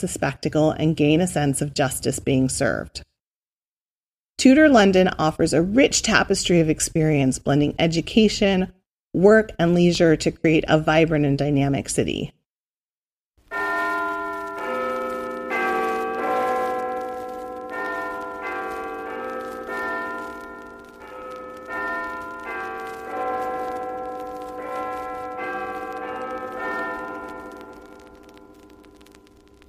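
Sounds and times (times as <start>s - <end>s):
speech: 0.0s - 3.1s, 4.4s - 12.4s
church clock bell striking noon: 13.5s - 29.0s.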